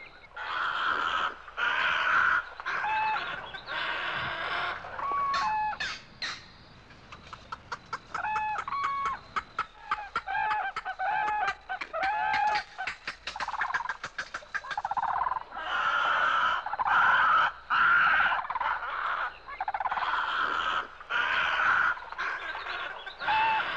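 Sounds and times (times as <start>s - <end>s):
bird clucking notes and short harmonic squeals: 0.4s - 23.7s.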